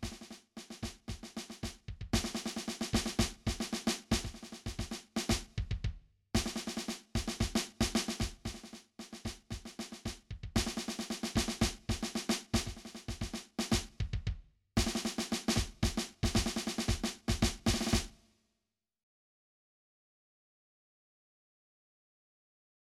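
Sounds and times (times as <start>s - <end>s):
drums: 0.0s - 18.2s.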